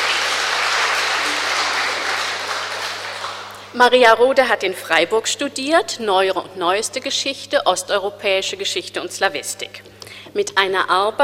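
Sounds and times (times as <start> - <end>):
audience applause: 0.0 - 3.7
speech: 3.8 - 11.2.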